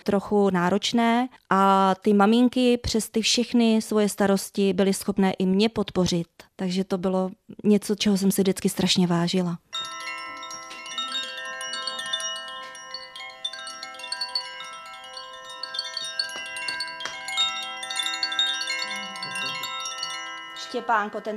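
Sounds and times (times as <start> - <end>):
speech: 0.0 - 10.2, 20.8 - 21.3
bell ringing to end morning routine: 9.7 - 21.3.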